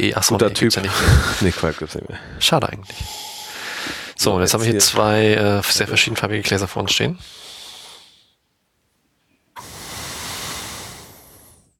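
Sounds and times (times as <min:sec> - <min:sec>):
speech: 0:00.0 - 0:07.5
breathing noises while sniffing wine: 0:01.0 - 0:04.2, 0:07.2 - 0:08.4, 0:09.6 - 0:11.7.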